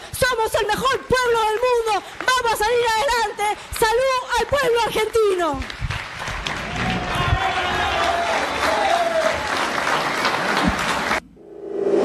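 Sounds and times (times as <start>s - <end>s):
speech: 0.4s - 5.8s
audience applause after a speech: 5.6s - 11.2s.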